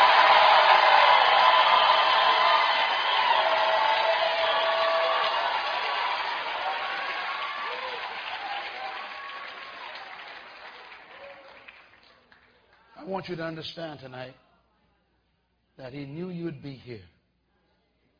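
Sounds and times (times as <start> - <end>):
audience screaming and shouting: 0.0 - 10.0
speech: 13.2 - 14.4, 15.8 - 17.1.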